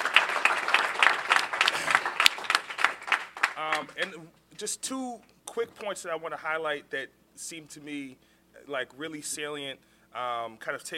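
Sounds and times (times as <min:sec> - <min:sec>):
audience applause: 0:00.0 - 0:04.1
speech: 0:03.8 - 0:10.9.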